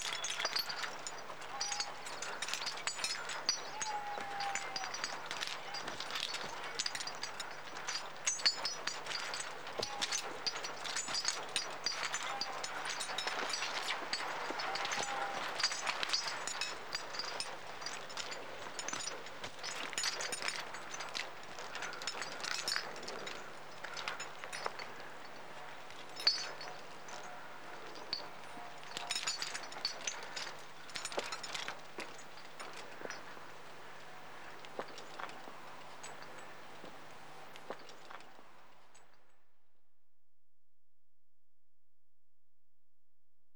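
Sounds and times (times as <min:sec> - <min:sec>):
equipment chinking while walking: 0:00.0 - 0:39.2.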